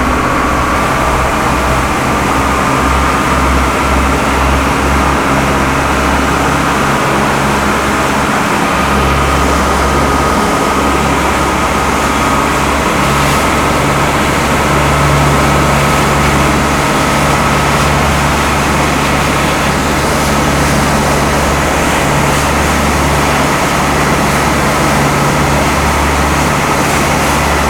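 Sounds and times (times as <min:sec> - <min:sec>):
boat engine running and stopping heard onboard: 0:00.0 - 0:27.6.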